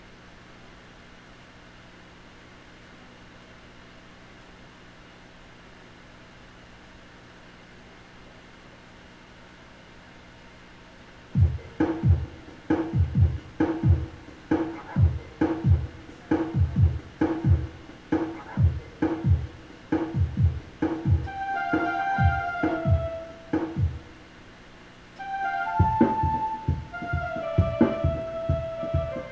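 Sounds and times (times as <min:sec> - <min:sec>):
rave music: 0:11.4 - 0:24.2, 0:25.2 - 0:29.2.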